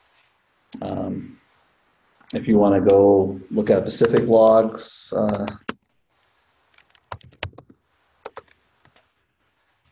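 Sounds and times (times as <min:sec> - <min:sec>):
speech: 0:00.8 - 0:01.4, 0:02.3 - 0:05.7
commands typed on a computer keyboard: 0:05.2 - 0:05.9, 0:06.7 - 0:09.0.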